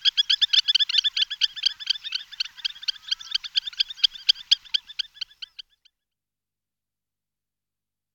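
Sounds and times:
spur-winged lapwing Vanellus spinosus calling: 0.0 - 5.8.

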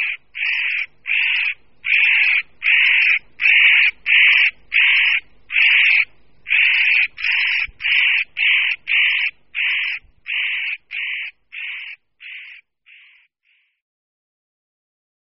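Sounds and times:
spotted nutcracker rasping calls: 0.0 - 13.7.

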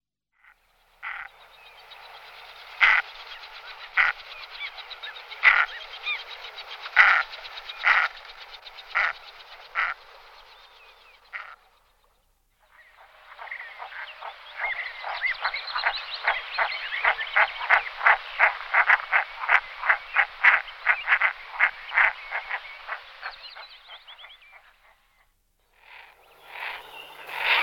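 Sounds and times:
common merganser harsh croaking calls: 0.4 - 1.4, 2.8 - 10.0, 11.3 - 11.7, 13.0 - 24.0, 25.7 - 27.6.

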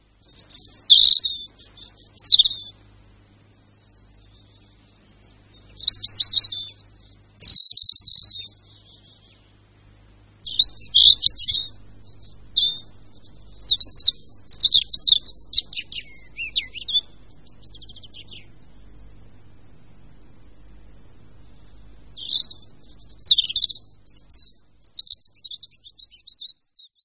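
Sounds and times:
European robin singing: 0.0 - 27.0.

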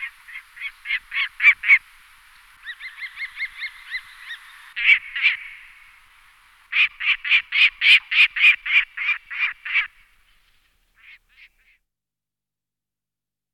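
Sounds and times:
Lanner falcon calling: 0.0 - 1.9, 2.6 - 5.9, 6.7 - 10.0.

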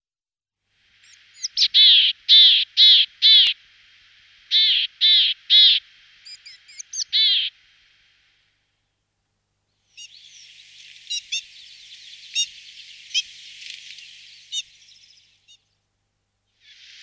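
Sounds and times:
willow tit piping notes: 1.0 - 3.6, 4.5 - 7.6, 9.7 - 15.8.

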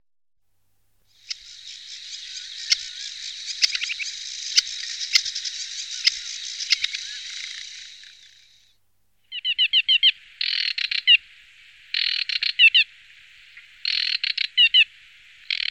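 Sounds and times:
aquatic warbler song: 1.0 - 15.6.

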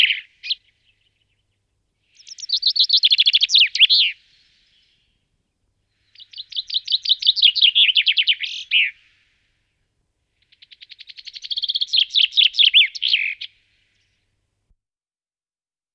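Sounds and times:
common chaffinch Fringilla coelebs calls: 0.0 - 1.2, 2.1 - 4.9, 6.0 - 9.1, 10.4 - 14.1.

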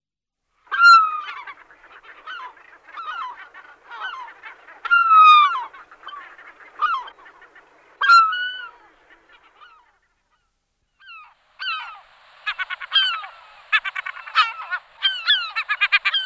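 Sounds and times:
European herring gull calling: 0.7 - 16.2.

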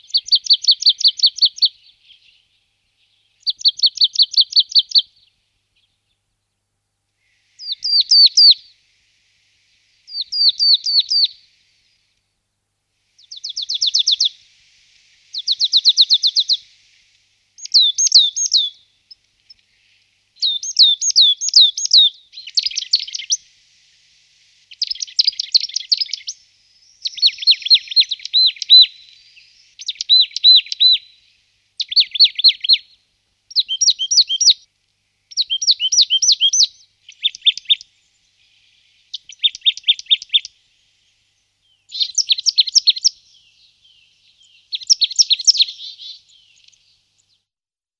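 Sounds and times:
marsh tit chattering: 0.0 - 2.4, 3.4 - 5.1, 7.6 - 8.7, 10.1 - 11.3, 13.2 - 14.4, 15.3 - 16.6, 17.6 - 23.4, 24.7 - 31.2, 31.8 - 34.7, 35.3 - 40.6, 41.8 - 47.3.

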